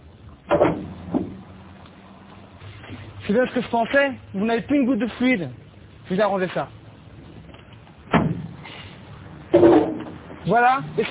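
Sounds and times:
car hood being opened at a garage: 0.5s - 1.4s
speech: 3.3s - 6.8s, 10.4s - 11.1s.

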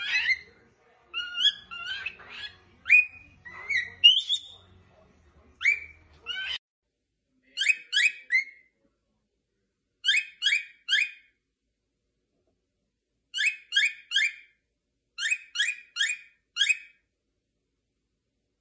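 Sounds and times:
cockatiel chirps and whistles: 0.0s - 0.5s, 1.1s - 4.6s, 5.6s - 6.6s, 7.5s - 8.7s, 10.0s - 11.3s, 13.4s - 14.6s, 15.2s - 17.0s.

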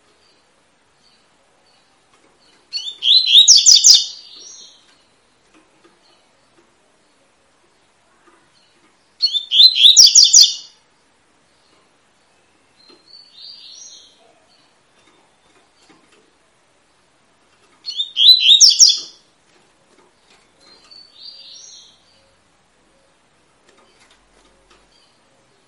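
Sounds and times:
Double-collared seedeater singing: 2.7s - 4.7s, 9.2s - 10.7s, 17.8s - 19.2s.

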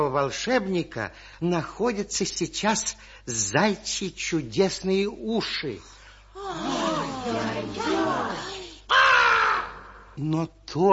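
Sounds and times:
speech: 0.0s - 8.5s, 10.2s - 10.9s
black raven cawing in a fairy tale: 8.9s - 10.1s.

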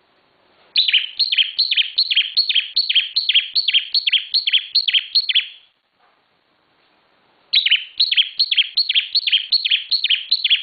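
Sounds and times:
bar-winged prinia calling high downslurred notes: 0.8s - 5.7s, 7.5s - 10.6s.

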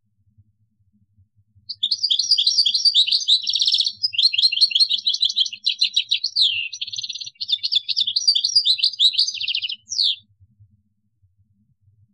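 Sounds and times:
European goldfinch song: 1.7s - 10.2s.

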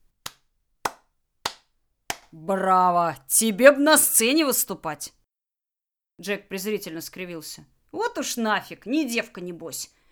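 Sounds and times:
slow hand claps: 0.2s - 2.4s
speech: 2.3s - 5.2s, 6.2s - 10.0s.

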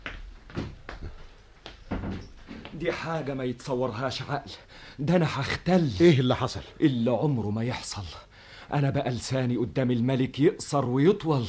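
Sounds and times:
door being shut with wooden clunks: 1.9s - 2.4s
speech: 2.8s - 11.4s.

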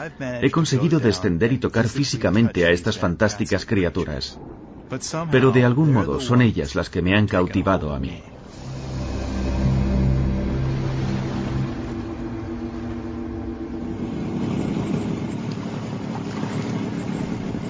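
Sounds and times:
speech: 0.0s - 8.6s
water rushing around a small boat far out at sea: 0.0s - 17.6s
wind around a small boat at sea: 0.0s - 17.6s
low droning hum: 8.0s - 17.6s.

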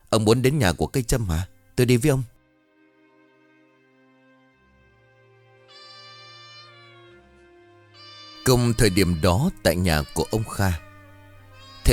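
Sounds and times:
speech: 0.1s - 2.3s, 8.5s - 10.8s
tabby cat meowing: 5.7s - 7.3s, 8.0s - 11.9s.

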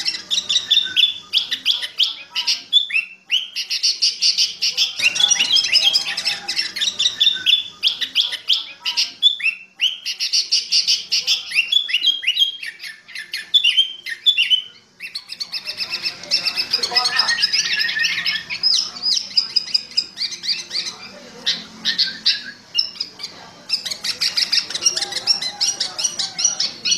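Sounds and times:
sooty-headed bulbul chattering song in fierce thunder voice style: 0.0s - 26.9s.

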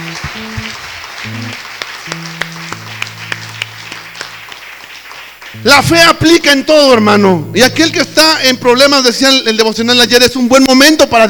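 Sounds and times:
audience applauding: 0.0s - 6.1s
speech: 5.6s - 11.2s.

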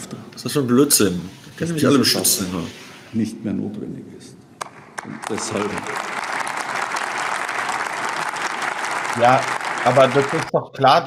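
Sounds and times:
speech: 0.4s - 4.4s, 5.0s - 6.1s, 9.2s - 11.0s
audience applause at a speech: 5.0s - 10.5s.

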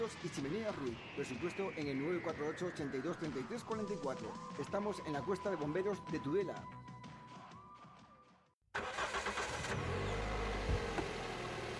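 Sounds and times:
speech: 0.0s - 6.8s
car engine starting and revving: 8.7s - 11.7s.

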